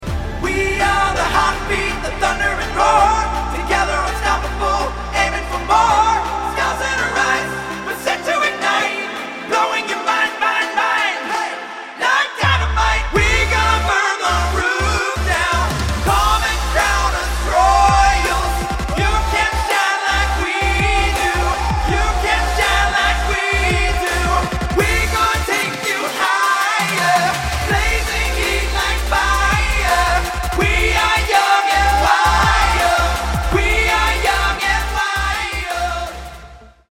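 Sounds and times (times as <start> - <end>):
male singers: 0.3 - 36.7.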